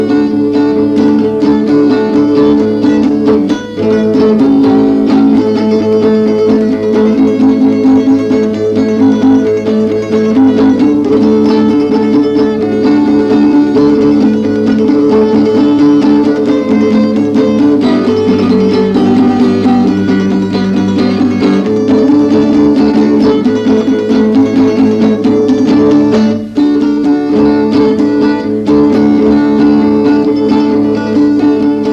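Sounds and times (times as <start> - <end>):
polka on guitar played four-handed: 0.0 - 31.9.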